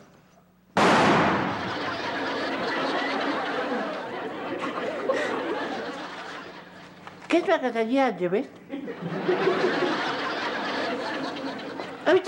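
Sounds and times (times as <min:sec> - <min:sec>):
rifle shot: 0:00.8 - 0:01.7
laughter: 0:01.4 - 0:07.1, 0:08.7 - 0:12.2
speech: 0:07.4 - 0:09.8, 0:12.1 - 0:12.2.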